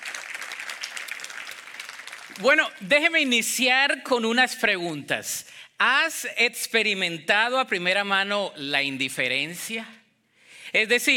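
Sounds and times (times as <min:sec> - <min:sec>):
loud applause: 0:00.0 - 0:02.8
speech: 0:02.4 - 0:10.0, 0:10.7 - 0:11.1.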